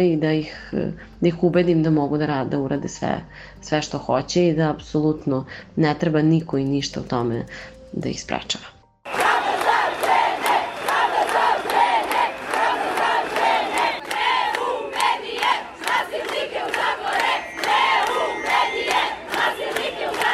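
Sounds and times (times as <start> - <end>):
speech: 0.0 - 9.2
sharp claps: 9.1 - 20.3
women protesters chanting in unison at a street protest: 9.2 - 20.3.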